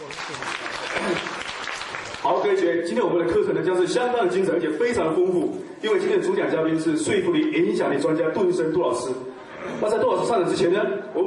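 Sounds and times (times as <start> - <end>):
audience applause: 0.0 - 2.5
speech: 2.4 - 9.2, 9.8 - 11.2.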